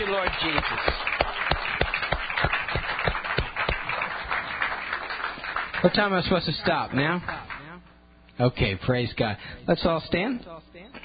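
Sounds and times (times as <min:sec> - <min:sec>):
roomful of people clapping: 0:00.0 - 0:07.8
speech: 0:00.2 - 0:01.1, 0:05.8 - 0:07.5, 0:08.4 - 0:11.0.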